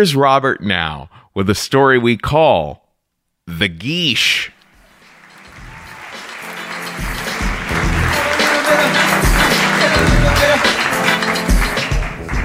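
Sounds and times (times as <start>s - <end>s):
speech: 0.0s - 2.8s, 3.5s - 4.6s
audience clapping: 4.7s - 12.4s.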